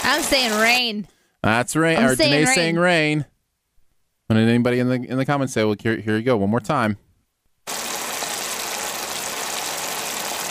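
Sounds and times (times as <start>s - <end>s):
speech: 0.1s - 3.3s, 4.3s - 7.0s
bacon frying in a pan: 7.7s - 10.4s.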